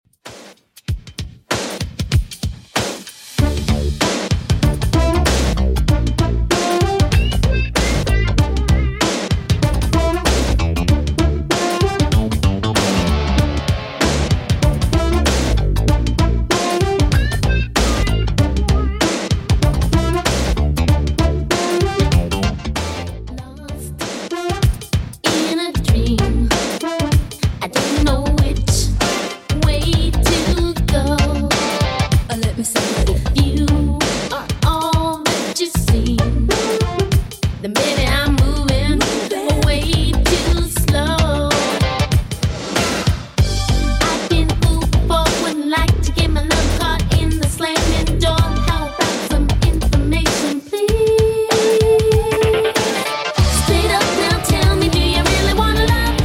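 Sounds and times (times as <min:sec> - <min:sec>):
80s Redrum drum machine beat: 0:00.1 - 0:23.2, 0:23.8 - 0:56.2.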